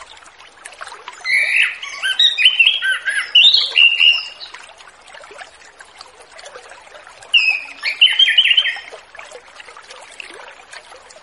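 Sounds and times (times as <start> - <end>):
orange-headed thrush singing repeated whistled notes: 1.2 - 4.5, 7.4 - 8.9.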